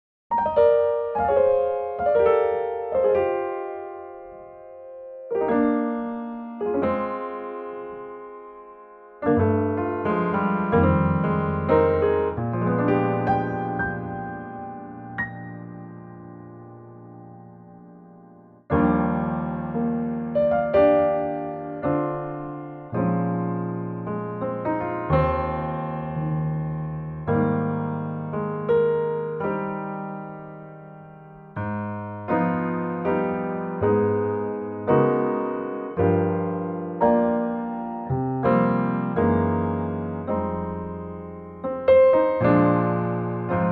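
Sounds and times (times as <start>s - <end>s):
electric piano: 0.3s - 43.7s.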